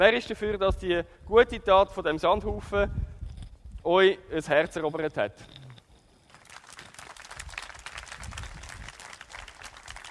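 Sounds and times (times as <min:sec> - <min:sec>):
speech: 0:00.0 - 0:03.0, 0:03.8 - 0:05.6
audience applause: 0:06.4 - 0:10.0.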